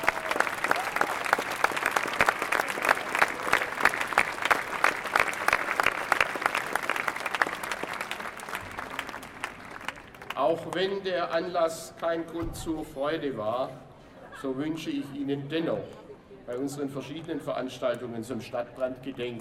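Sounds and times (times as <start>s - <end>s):
sustained applause from a sizable audience: 0.0s - 10.8s
speech: 10.5s - 19.3s.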